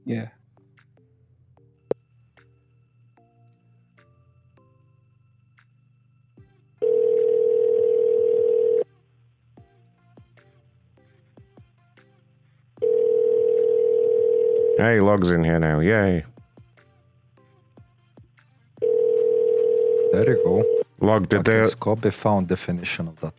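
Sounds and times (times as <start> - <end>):
speech: 0.1 - 0.4, 14.8 - 16.3, 20.2 - 23.3
telephone dial tone: 6.8 - 8.9, 12.8 - 14.8, 18.8 - 20.8.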